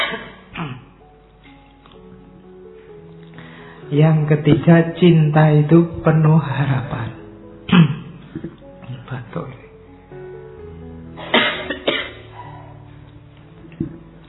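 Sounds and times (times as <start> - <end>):
audience coughing: 0.0 - 1.0, 7.7 - 8.1, 11.2 - 12.4
speech: 3.9 - 7.2.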